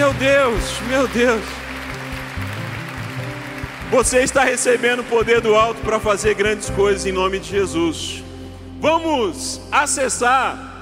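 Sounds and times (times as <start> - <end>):
audience applause: 0.0 - 5.5
speech: 0.1 - 1.6, 3.9 - 10.7.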